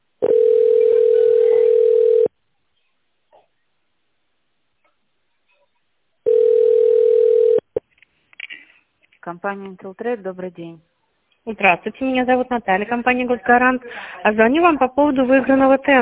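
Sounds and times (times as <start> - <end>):
telephone ringback tone while call connects: 0.2 - 2.3, 6.3 - 7.6
speech: 9.3 - 16.0.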